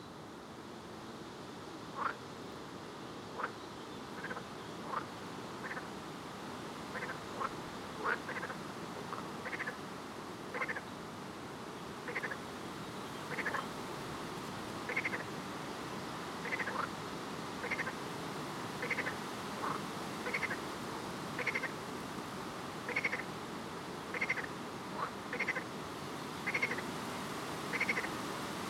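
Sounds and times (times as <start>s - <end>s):
steady background hiss: 0.0s - 28.6s
frog calls: 2.0s - 2.2s, 3.4s - 3.6s, 4.2s - 5.9s, 6.9s - 9.8s, 10.5s - 10.9s, 12.0s - 12.4s, 13.3s - 13.7s, 14.9s - 15.4s, 16.4s - 16.9s, 17.6s - 18.0s, 18.8s - 20.6s, 21.4s - 21.8s, 22.9s - 23.3s, 24.1s - 25.7s, 26.4s - 26.9s, 27.7s - 28.2s.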